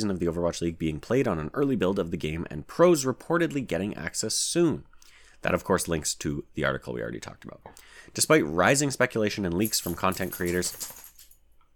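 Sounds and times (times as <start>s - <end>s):
speech: 0.0s - 11.1s
dog rattling jingle: 9.7s - 11.4s.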